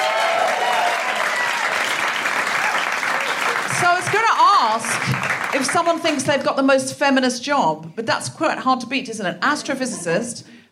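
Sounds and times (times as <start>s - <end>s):
audience applause: 0.0s - 5.9s
speech: 4.6s - 10.5s.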